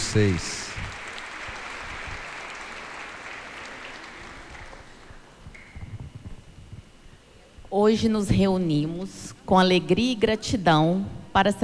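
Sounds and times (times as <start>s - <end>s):
crowd clapping: 0.0s - 5.3s
speech: 0.1s - 0.6s, 7.8s - 11.6s.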